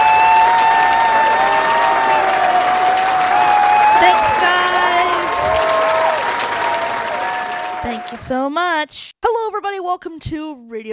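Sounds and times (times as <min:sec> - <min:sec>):
studio audience applause for live radio show host: 0:00.0 - 0:08.4
speech: 0:08.3 - 0:10.9.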